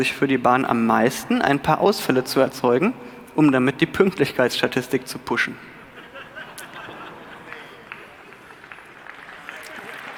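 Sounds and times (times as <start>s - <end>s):
speech: 0.0s - 5.7s
laughter: 5.8s - 8.6s
audience clapping: 6.6s - 10.1s.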